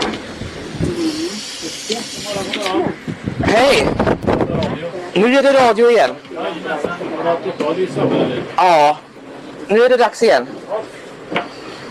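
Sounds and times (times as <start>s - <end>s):
bus arriving at a stop: 0.6s - 2.7s
speech: 0.8s - 1.1s, 2.3s - 4.2s, 5.2s - 9.0s, 9.7s - 10.9s.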